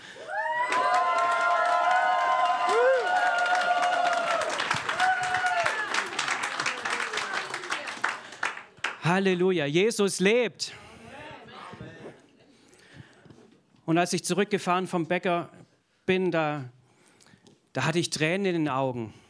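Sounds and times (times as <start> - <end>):
sustained whoops: 0.0 - 7.7
audience cheering and shouting: 0.2 - 7.9
applause: 0.3 - 9.2
speech: 9.1 - 10.8, 13.9 - 16.8, 17.8 - 19.2.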